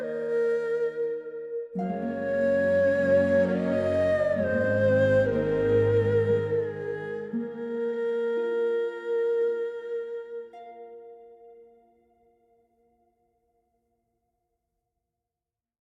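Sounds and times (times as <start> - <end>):
erhu: 0.0 - 12.0.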